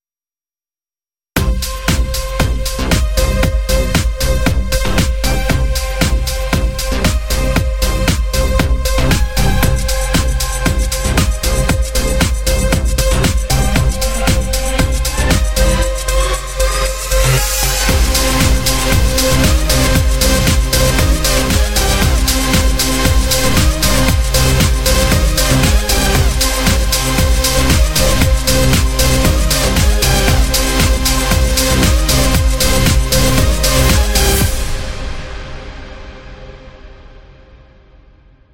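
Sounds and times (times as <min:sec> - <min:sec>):
electronic music: 0:01.4 - 0:36.2.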